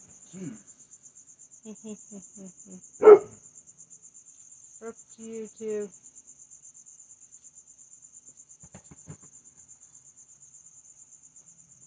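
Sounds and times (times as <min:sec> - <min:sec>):
crickets chirring: 0:00.0 - 0:11.8
speech: 0:00.4 - 0:00.7, 0:01.6 - 0:03.5, 0:04.8 - 0:06.2
dog whimpering: 0:03.0 - 0:03.3
dog barking: 0:03.0 - 0:03.4.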